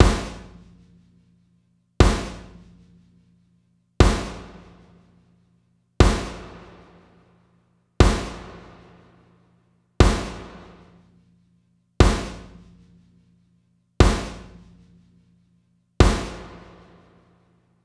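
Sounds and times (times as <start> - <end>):
snare drum with reverb: 0.0 - 0.6, 2.0 - 2.6, 4.0 - 5.1, 6.0 - 11.1, 12.0 - 12.6, 14.0 - 14.6, 16.0 - 17.5.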